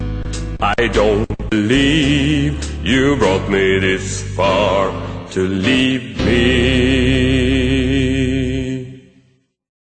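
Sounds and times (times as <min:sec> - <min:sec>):
bass on its body: 0:00.0 - 0:08.8.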